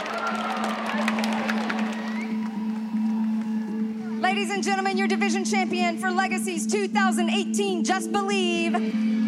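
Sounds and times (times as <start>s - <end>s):
scattered cheers: 0.0s - 4.1s
crowd applause: 0.0s - 4.2s
speech: 4.3s - 9.1s.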